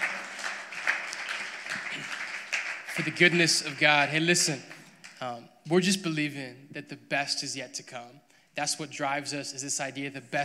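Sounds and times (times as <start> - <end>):
audience clapping: 0.0 - 5.2
speech: 3.0 - 10.4.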